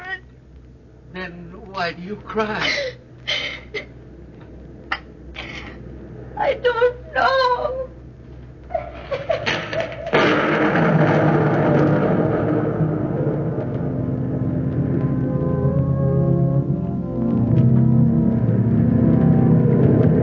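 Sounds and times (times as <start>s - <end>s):
speech: 1.8s - 3.0s, 6.5s - 7.8s
scattered thumps: 9.3s - 20.2s
ocean surf booming: 10.1s - 15.4s.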